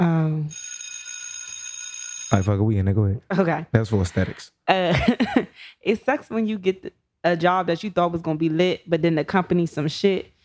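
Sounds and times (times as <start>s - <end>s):
bell ringing: 0.5s - 2.5s
speech: 2.3s - 10.3s.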